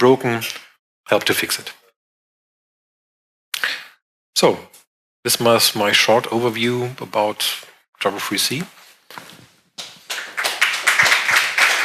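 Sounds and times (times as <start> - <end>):
speech: 0.0 - 1.8, 4.4 - 9.3
audience applause: 10.1 - 11.8.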